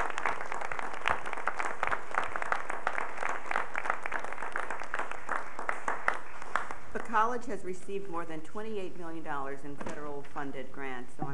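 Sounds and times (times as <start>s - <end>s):
audience applause: 0.0s - 6.9s
speech: 7.2s - 11.3s.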